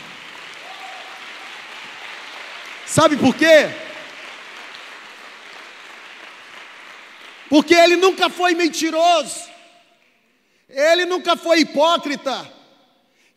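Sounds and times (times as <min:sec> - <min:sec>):
audience applause in church: 0:00.0 - 0:08.3
speech: 0:02.9 - 0:03.8, 0:07.5 - 0:09.4, 0:10.8 - 0:12.6.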